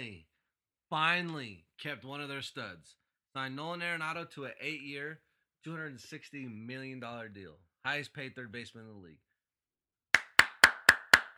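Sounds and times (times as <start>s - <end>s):
speech: 0.9s - 9.3s
clapping: 10.2s - 11.3s.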